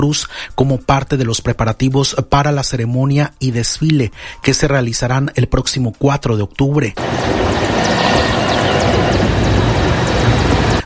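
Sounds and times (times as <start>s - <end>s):
speech: 0.0s - 8.4s
helicopters flying overhead: 7.0s - 10.8s.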